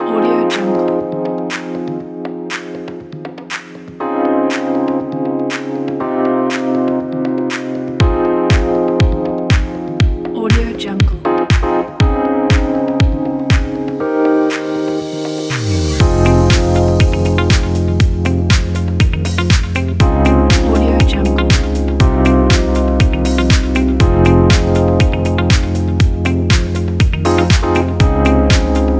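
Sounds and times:
fashion house background music: 0.0s - 28.9s.

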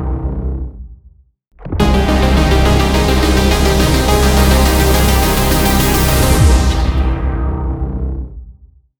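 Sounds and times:
1980s mysterious retro trailer ident music: 1.6s - 8.2s.

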